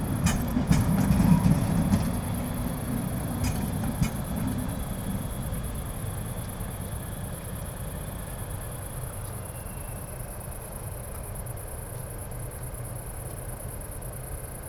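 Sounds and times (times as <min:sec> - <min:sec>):
train: 0:00.0 - 0:14.6.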